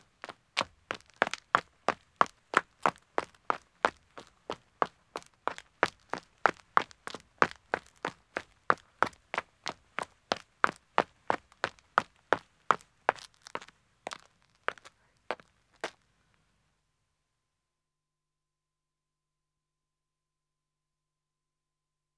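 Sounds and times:
man's running footsteps starting on a country road: 0:00.0 - 0:16.0.

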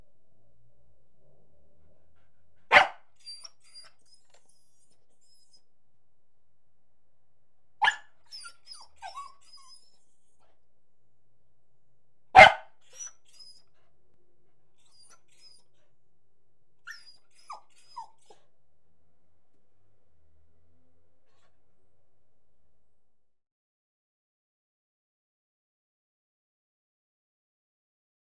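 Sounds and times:
beagle yelping and barking: 0:02.7 - 0:05.6, 0:07.8 - 0:10.0, 0:12.4 - 0:13.7, 0:14.8 - 0:15.7, 0:16.9 - 0:18.4.

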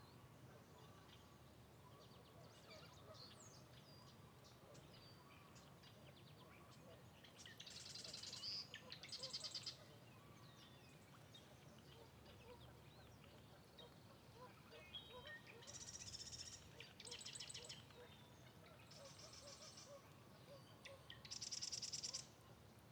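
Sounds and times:
wind in a forest in the Pacific Northwest: 0:00.0 - 0:22.9
forest birds in spring in the Pacific Northwest: 0:00.8 - 0:22.9.

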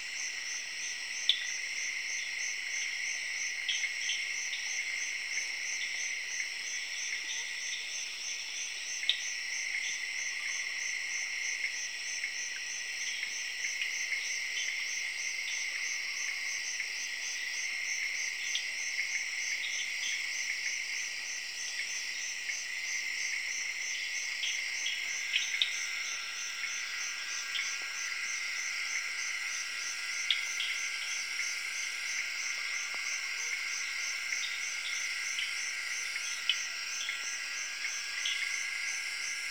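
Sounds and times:
crickets chirping in Zaire: 0:00.0 - 0:39.5
tree frogs calling in Zaire: 0:24.3 - 0:39.5.

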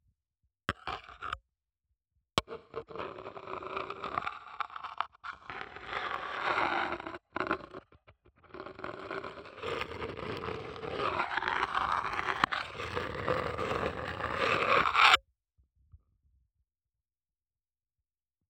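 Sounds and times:
small metal box lid scraping with metal, muted, contact microphone: 0:02.7 - 0:15.2.

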